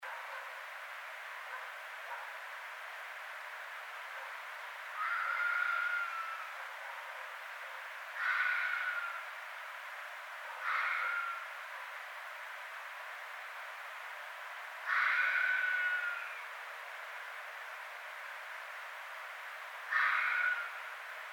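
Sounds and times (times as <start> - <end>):
red fox calling: 5.0 - 6.6, 8.2 - 9.3, 10.5 - 11.6, 14.8 - 16.5, 19.9 - 20.9.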